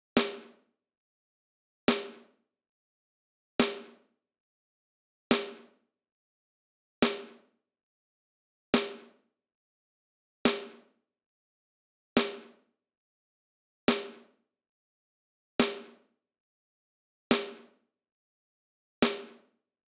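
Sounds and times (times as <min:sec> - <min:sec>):
snare drum: 0:00.2 - 0:00.4, 0:01.9 - 0:02.2, 0:05.3 - 0:05.6, 0:07.0 - 0:07.3, 0:10.5 - 0:10.8, 0:12.2 - 0:12.4, 0:13.9 - 0:14.2, 0:17.3 - 0:17.6, 0:19.0 - 0:19.4.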